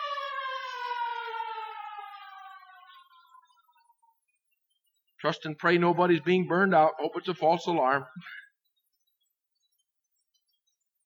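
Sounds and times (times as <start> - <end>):
fire truck siren passing: 0.0 - 4.2
speech: 5.2 - 8.4.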